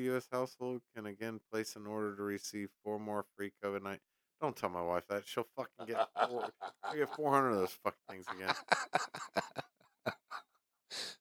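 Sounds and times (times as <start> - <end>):
speech: 0.0 - 10.2
laughter: 5.6 - 10.4
person sniffling: 10.3 - 11.1.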